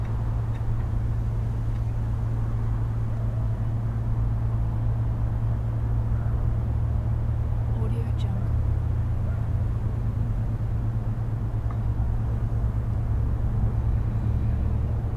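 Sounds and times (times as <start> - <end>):
distant city ambience heard from a large mound: 0.0 - 15.1.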